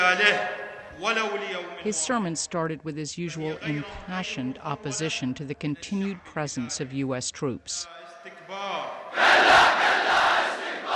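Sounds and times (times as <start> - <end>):
speech: 0.1 - 9.7
crowd chanting slogans at a mosque: 9.0 - 10.9.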